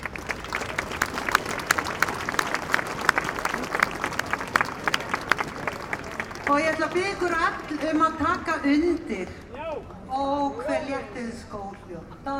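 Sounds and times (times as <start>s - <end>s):
audience clapping to welcome a large choir: 0.0s - 10.2s
speech: 6.5s - 9.4s, 10.2s - 12.3s.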